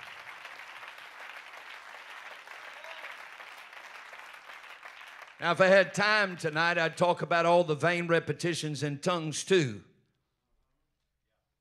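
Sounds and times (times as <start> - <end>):
audience clapping: 0.0 - 7.3
speech: 5.4 - 9.9.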